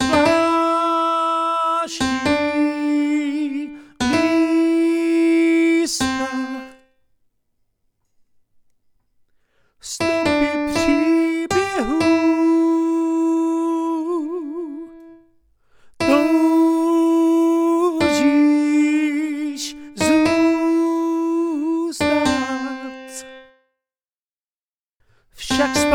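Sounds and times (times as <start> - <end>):
piano: 0.0 - 6.9, 9.8 - 15.4, 16.0 - 23.6, 25.4 - 25.9.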